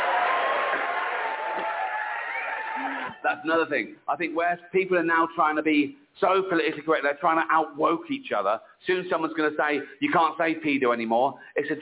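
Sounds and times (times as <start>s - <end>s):
comedy audience clapping: 0.0s - 3.2s
speech: 3.2s - 11.8s.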